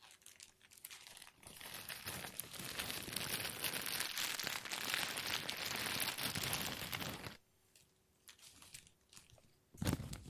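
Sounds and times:
plastic crinkling: 0:00.0 - 0:10.2.

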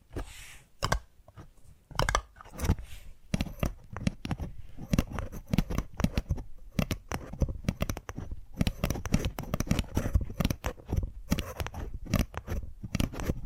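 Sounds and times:
ASMR tapping trigger taps and clicks: 0:00.8 - 0:01.4, 0:03.3 - 0:13.4.

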